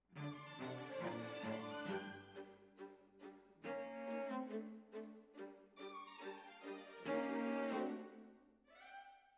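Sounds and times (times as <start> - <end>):
cellos playing: 0.2 - 5.6, 6.3 - 8.3.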